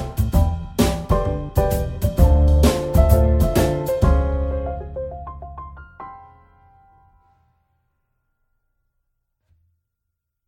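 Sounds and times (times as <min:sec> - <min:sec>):
evening jazz music: 0:00.0 - 0:07.3.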